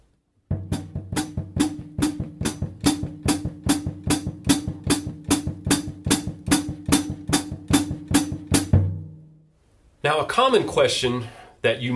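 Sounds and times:
bass drum feathered by the foot at medium-up tempo: 0:00.5 - 0:09.4
speech: 0:10.2 - 0:11.9.

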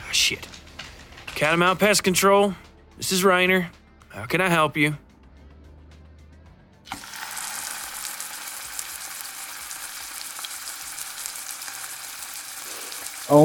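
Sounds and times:
speech: 0:00.1 - 0:00.6, 0:01.4 - 0:05.0
fish frying with spices: 0:06.9 - 0:13.4.

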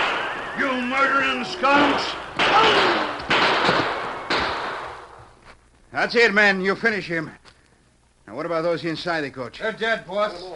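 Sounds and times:
gunshots: 0:00.0 - 0:05.2
speech: 0:00.6 - 0:03.1, 0:05.9 - 0:07.4, 0:08.3 - 0:10.5.

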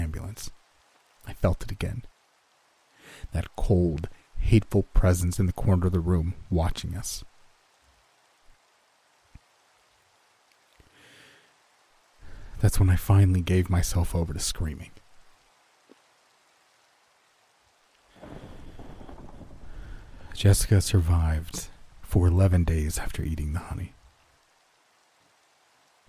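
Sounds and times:
rain: 0:00.0 - 0:26.0
speech: 0:00.4 - 0:00.6, 0:01.4 - 0:02.1, 0:03.3 - 0:07.3, 0:12.6 - 0:15.0, 0:20.4 - 0:24.0
thunder: 0:18.1 - 0:22.0.

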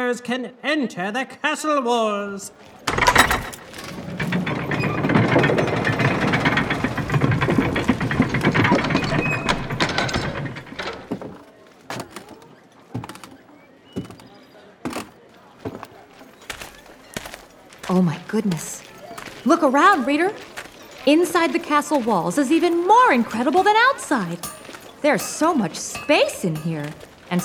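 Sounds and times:
speech: 0:00.1 - 0:03.6, 0:17.9 - 0:18.8, 0:19.4 - 0:27.4
drawbridge mechanism clanks and thunks: 0:02.8 - 0:11.4, 0:20.6 - 0:27.4
drawbridge being lowered with ratcheting gears: 0:02.9 - 0:11.4, 0:18.9 - 0:27.4.

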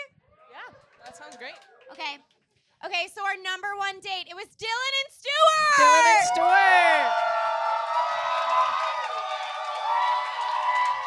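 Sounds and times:
speech: 0:01.3 - 0:07.3
audience applause: 0:06.3 - 0:11.0.

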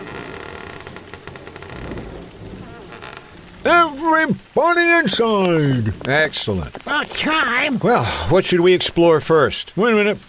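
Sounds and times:
low rumble of thunder: 0:00.0 - 0:07.9
heavy rain: 0:00.0 - 0:10.2
speech: 0:03.6 - 0:10.2.

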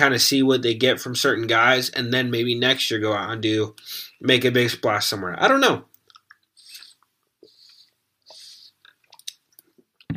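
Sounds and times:
speech: 0:00.0 - 0:05.9
person drinking water: 0:06.0 - 0:09.5.

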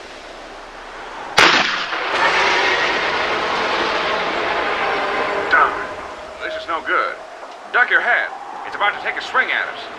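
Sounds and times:
rushing hissing roar: 0:00.0 - 0:09.9
harpoon gun firing: 0:01.4 - 0:02.2
speech: 0:06.8 - 0:09.9.

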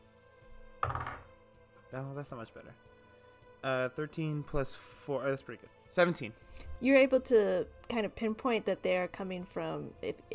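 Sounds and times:
die dropped onto a table: 0:00.8 - 0:01.4
speech: 0:01.9 - 0:03.0, 0:03.6 - 0:10.3.

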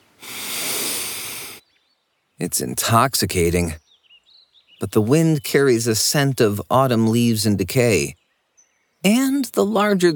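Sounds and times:
deep inhale through the nose: 0:00.1 - 0:01.6
speech: 0:02.4 - 0:03.8, 0:04.8 - 0:08.2, 0:09.0 - 0:10.1.

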